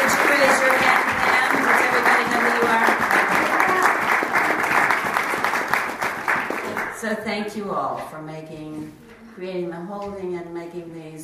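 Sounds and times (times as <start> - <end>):
crowd clapping: 0.0 - 7.0
speech: 7.4 - 11.2.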